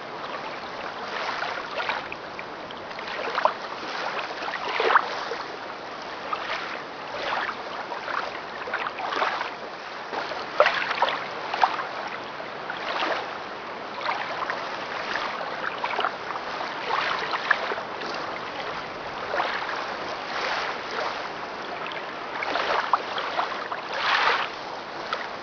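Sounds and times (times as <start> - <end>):
ocean water lapping at lighthouses: 0.0 - 25.4.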